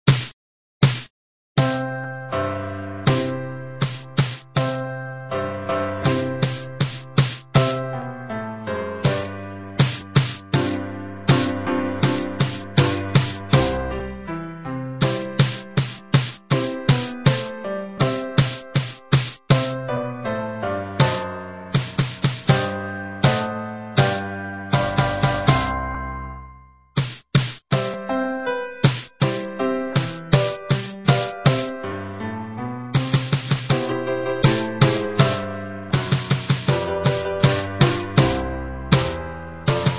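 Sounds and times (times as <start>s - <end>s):
drum played with sticks: 0.0s - 1.8s, 3.1s - 4.7s, 6.1s - 7.8s, 9.0s - 13.8s, 15.0s - 19.8s, 21.0s - 24.2s, 24.8s - 25.7s, 27.0s - 28.0s, 28.8s - 31.7s, 33.0s - 39.9s
piano: 1.6s - 27.0s, 27.7s - 39.9s.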